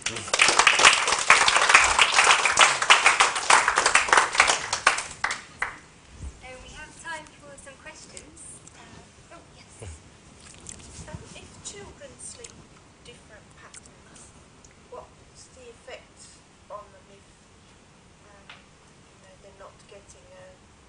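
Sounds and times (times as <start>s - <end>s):
audience clapping: 0.0s - 5.8s.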